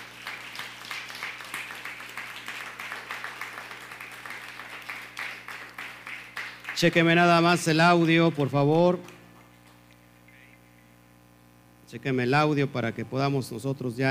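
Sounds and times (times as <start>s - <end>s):
crowd applauding: 0.0s - 9.8s
speech: 6.8s - 9.1s, 11.9s - 14.0s.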